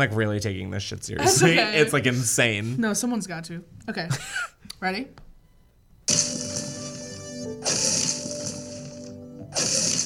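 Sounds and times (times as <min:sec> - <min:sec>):
speech: 0:00.0 - 0:05.2
video game stone-hit sound effect with ringing metallic tail: 0:06.1 - 0:10.0.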